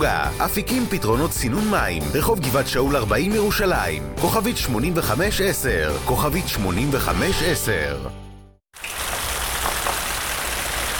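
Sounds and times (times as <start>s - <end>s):
speech: 0.0s - 8.2s
rain falling: 8.8s - 10.9s.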